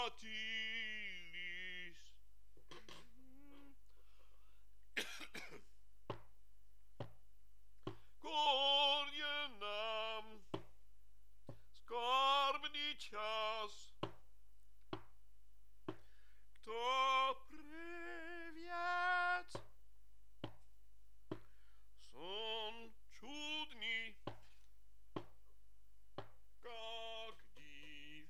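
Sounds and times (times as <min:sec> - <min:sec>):
tenor singing: 0:00.0 - 0:02.2, 0:08.2 - 0:10.7, 0:11.7 - 0:14.1, 0:15.9 - 0:19.7, 0:22.0 - 0:24.5, 0:26.6 - 0:28.2.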